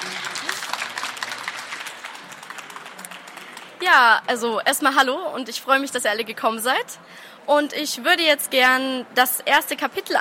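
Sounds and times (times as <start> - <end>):
audience applause: 0.0 - 3.8
speech: 3.8 - 10.2.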